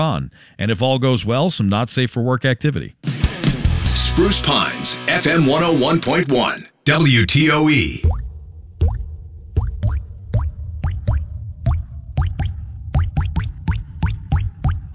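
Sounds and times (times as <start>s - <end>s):
speech: 0.0s - 3.2s, 4.0s - 8.2s
dripping water from a plumbing leak: 8.0s - 14.9s.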